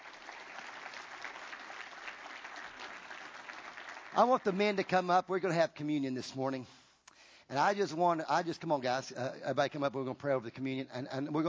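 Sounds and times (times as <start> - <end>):
audience applause: 0.0 - 4.9
speech: 4.2 - 6.8, 7.5 - 11.4.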